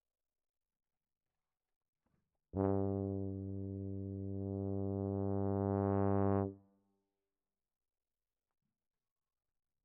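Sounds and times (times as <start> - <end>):
tuba: 2.6 - 6.7.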